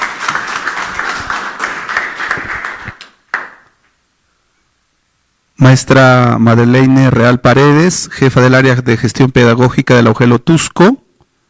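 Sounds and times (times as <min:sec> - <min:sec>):
audience applause: 0:00.0 - 0:03.7
speech: 0:05.6 - 0:11.0.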